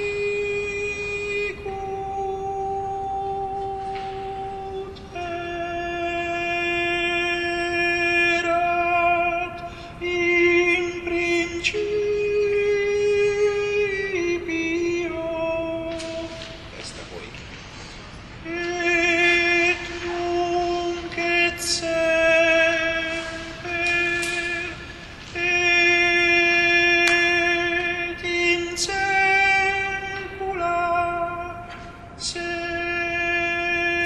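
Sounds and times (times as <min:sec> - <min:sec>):
contralto voices singing: 0:00.0 - 0:16.9, 0:18.4 - 0:34.0.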